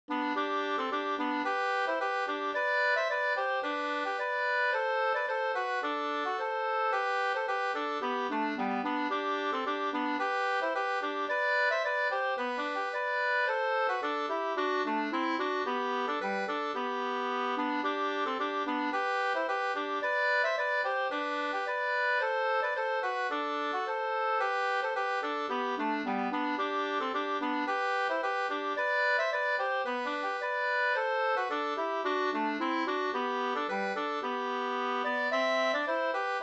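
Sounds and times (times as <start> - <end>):
folk walking tune: 0.1 - 36.4.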